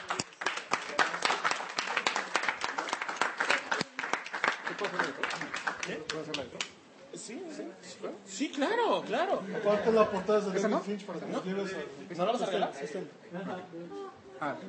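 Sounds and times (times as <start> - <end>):
applause: 0.0 - 6.8
speech: 4.8 - 14.6.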